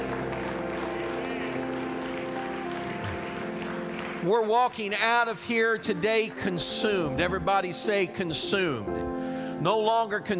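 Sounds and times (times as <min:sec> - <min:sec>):
audience clapping hands: 0:00.0 - 0:07.5
speech: 0:04.2 - 0:10.3.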